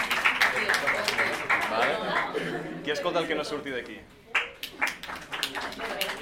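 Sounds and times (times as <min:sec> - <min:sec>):
small crowd applauding: 0:00.0 - 0:02.4, 0:04.3 - 0:06.1
speech: 0:01.8 - 0:04.2.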